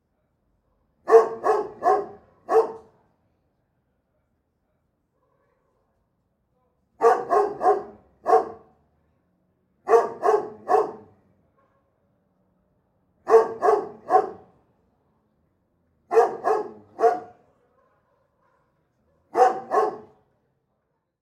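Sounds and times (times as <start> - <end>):
large dog barking: 0.8 - 3.0, 5.1 - 6.0, 7.0 - 8.8, 9.8 - 12.0, 13.2 - 14.6, 16.1 - 20.3.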